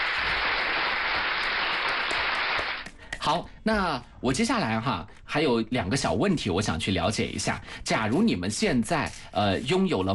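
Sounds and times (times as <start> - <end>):
applause from children: 0.0 - 2.9
speech: 3.3 - 10.1.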